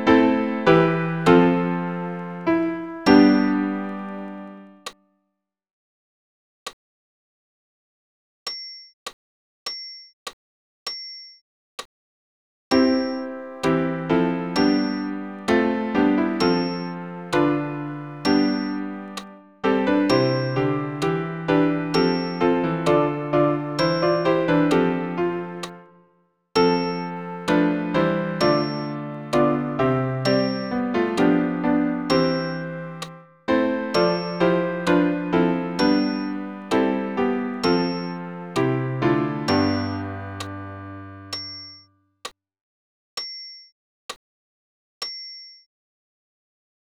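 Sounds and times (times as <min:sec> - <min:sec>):
piano: 0:00.0 - 0:05.0, 0:12.7 - 0:41.6.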